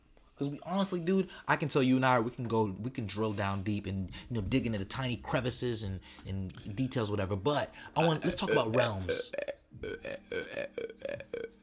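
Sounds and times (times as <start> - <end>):
speech: 0.4 - 11.6
loud croaking burp: 8.4 - 11.6.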